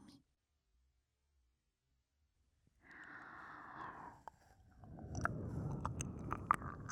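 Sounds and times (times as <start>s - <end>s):
ear licking: 3.8s - 6.8s.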